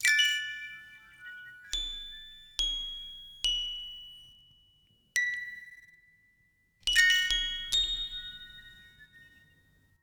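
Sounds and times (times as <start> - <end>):
music box notes: 0.0 - 6.1, 6.9 - 9.6.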